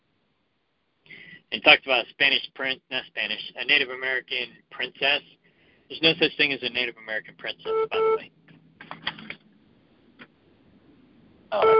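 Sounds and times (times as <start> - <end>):
speech: 1.5 - 8.4, 11.5 - 11.7
phone beeping: 7.7 - 8.2, 11.5 - 11.7.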